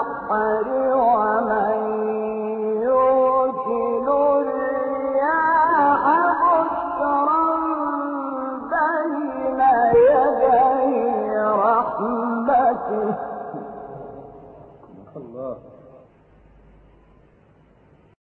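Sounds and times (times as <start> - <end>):
Quran recitation: 0.0 - 14.2.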